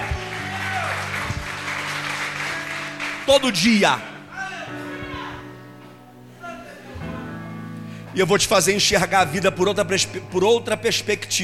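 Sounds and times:
audience applause: 0.0s - 4.2s
speech: 3.3s - 4.1s, 8.2s - 11.4s.

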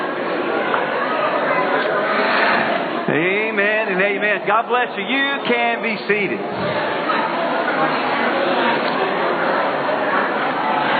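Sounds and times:
audience chatter: 0.0s - 10.9s
speech: 4.4s - 6.9s.

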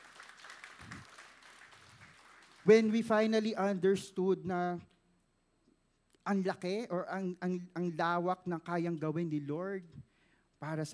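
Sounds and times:
congregation applauding during a Christian gospel talk: 0.0s - 3.6s
speech: 2.6s - 4.9s, 6.3s - 10.9s.

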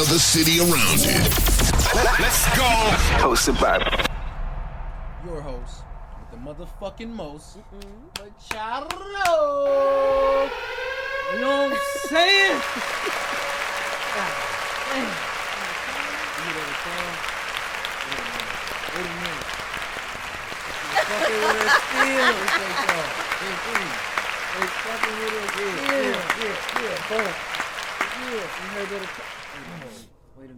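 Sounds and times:
speech: 0.1s - 4.1s, 5.3s - 13.4s, 14.1s - 15.3s, 16.5s - 17.4s, 19.0s - 19.5s, 21.1s - 27.5s, 28.2s - 30.5s
laughter: 3.8s - 9.8s, 20.6s - 27.8s
crowd long applause: 10.3s - 30.0s.

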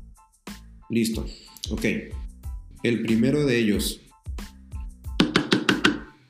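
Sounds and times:
speech: 0.9s - 2.3s, 2.8s - 4.0s
video call knock notification: 5.2s - 6.1s.

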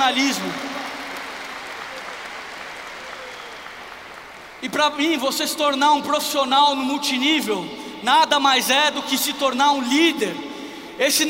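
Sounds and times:
audience applause: 0.0s - 4.7s
speech: 4.6s - 11.2s.

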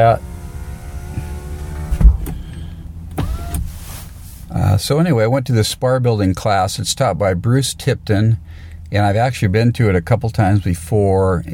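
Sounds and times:
speech: 0.0s - 0.3s, 4.6s - 11.5s
car window being rolled up: 0.0s - 4.6s.

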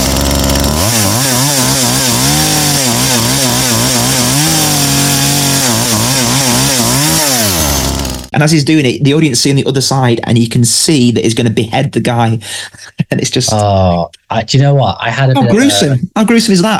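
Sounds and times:
chainsaw cutting through a wooden door: 0.0s - 8.3s
speech: 8.4s - 16.7s.

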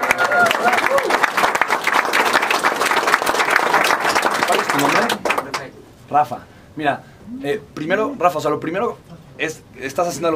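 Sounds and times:
faint voices cheering: 0.0s - 1.3s
crowd applauding: 0.0s - 5.7s
speech: 6.1s - 10.3s.

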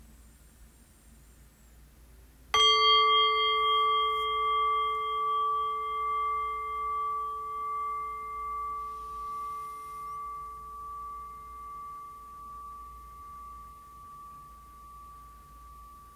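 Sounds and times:
meditation bell struck, clear bright tone with overtones: 2.6s - 16.1s.

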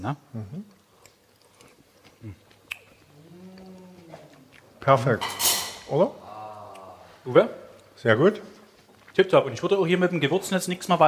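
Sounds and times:
speech: 0.0s - 0.8s, 2.2s - 2.4s, 4.8s - 6.2s, 7.2s - 8.5s, 9.2s - 11.0s
chewing a piece of cooked carrot from stir-fried vegetables: 0.7s - 4.8s, 7.7s - 9.3s.

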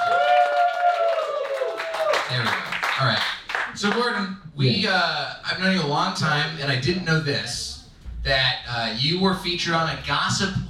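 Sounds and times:
crowd cheering: 0.0s - 3.0s
applause: 0.0s - 4.2s
speech: 2.3s - 10.6s.

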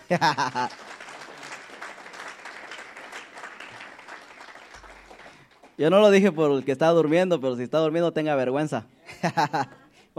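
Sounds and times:
laughter: 0.0s - 1.6s, 9.0s - 9.9s
audience applauding: 0.0s - 6.3s
speech: 0.1s - 0.9s, 5.8s - 10.1s.

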